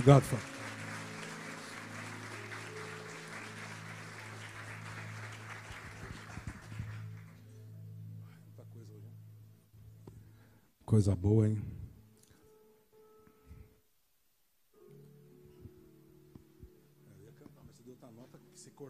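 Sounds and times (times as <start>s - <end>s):
speech: 0.0s - 0.5s, 10.9s - 11.8s
audience applause: 0.0s - 7.5s.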